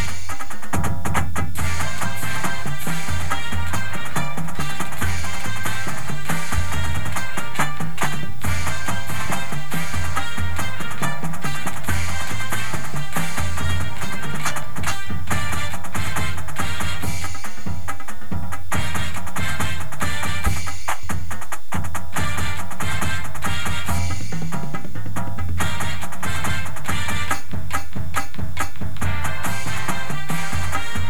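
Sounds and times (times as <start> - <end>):
full drumline playing: 0.0 - 31.0
music: 0.0 - 31.0.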